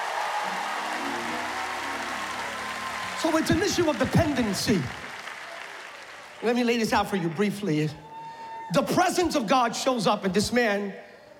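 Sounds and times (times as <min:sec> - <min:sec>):
audience clapping: 0:00.0 - 0:07.6
speech: 0:03.2 - 0:05.1, 0:06.4 - 0:08.0, 0:08.7 - 0:11.1.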